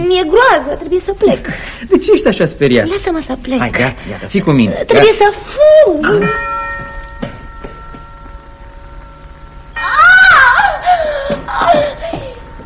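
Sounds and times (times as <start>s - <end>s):
speech: 0.0s - 6.5s
woman screaming loudly: 9.8s - 12.2s.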